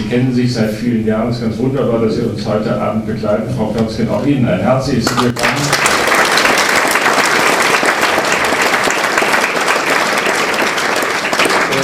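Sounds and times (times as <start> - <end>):
speech: 0.1 - 5.8
audience applause: 5.1 - 11.8.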